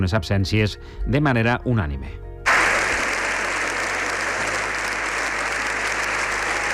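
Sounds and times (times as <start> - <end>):
speech: 0.0 - 2.2
congress applauding a speech: 2.5 - 6.7.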